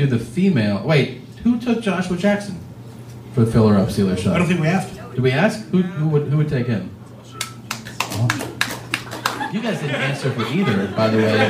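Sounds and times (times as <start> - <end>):
speech: 0.0 - 2.7, 3.4 - 7.0, 8.2 - 8.4, 9.5 - 11.4
person clapping: 7.4 - 9.5
laughter: 8.0 - 11.4.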